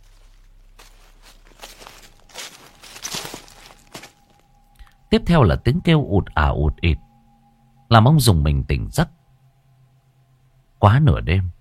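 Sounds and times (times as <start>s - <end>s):
rustling footsteps in a garden: 0.0s - 4.8s
speech: 5.1s - 7.0s, 7.9s - 9.2s, 10.8s - 11.5s.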